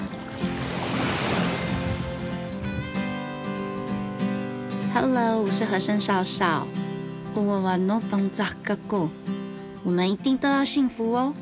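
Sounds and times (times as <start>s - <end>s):
ocean waves: 0.0s - 3.8s
speech: 5.0s - 6.8s, 7.4s - 11.3s.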